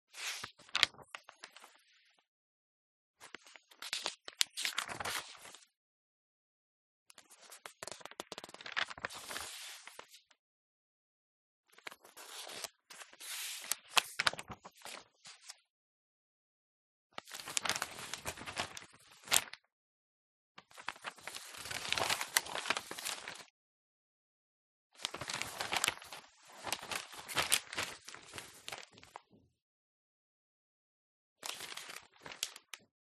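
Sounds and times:
newspaper pages turning and handling: 0.2s - 1.8s, 3.4s - 5.6s, 7.3s - 10.1s, 11.8s - 15.4s, 17.2s - 19.6s, 20.7s - 23.5s, 25.0s - 29.2s, 31.4s - 32.8s.

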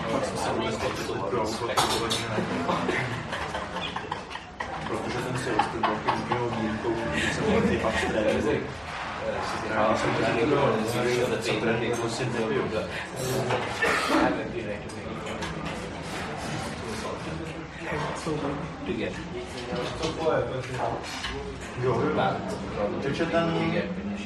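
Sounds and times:
medium crowd murmur in an Indian restaurant interior in Prague: 0.0s - 24.2s
people eating food from metal plates: 0.0s - 24.2s
laughter: 2.0s - 8.4s
heavy coughing: 13.7s - 14.5s.

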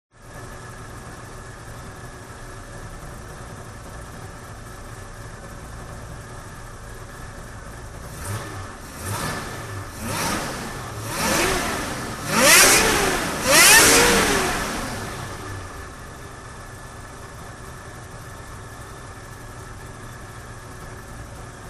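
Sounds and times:
vintage 1957 Chevrolet car engine revving: 8.0s - 16.1s.

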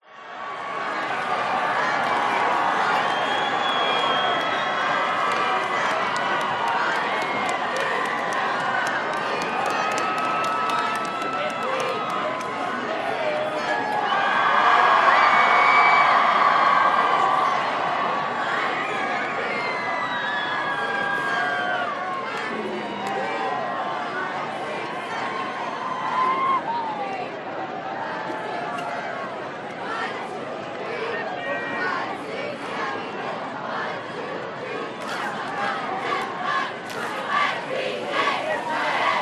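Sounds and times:
American football crowd: 0.0s - 39.2s
cheerleaders: 0.0s - 39.2s.

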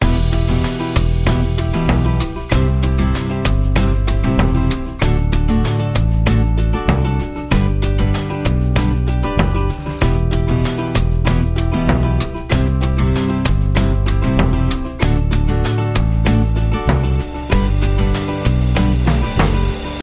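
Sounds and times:
happy music: 0.0s - 20.0s.

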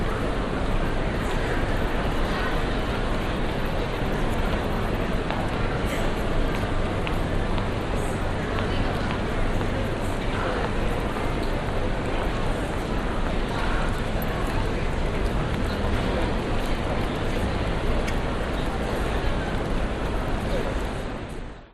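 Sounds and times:
pedestrians on busy city street: 0.0s - 21.6s.

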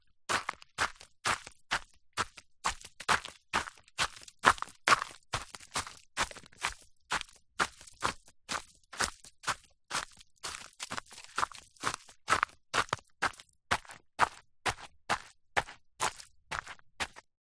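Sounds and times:
footsteps in soft shoes on a gravelly path: 0.3s - 17.3s.

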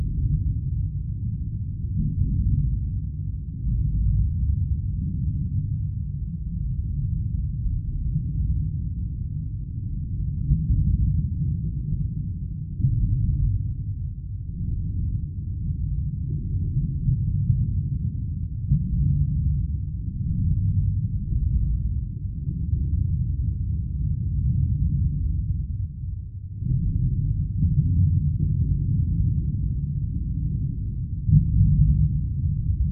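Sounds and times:
underwater water rumbling: 0.0s - 32.8s.

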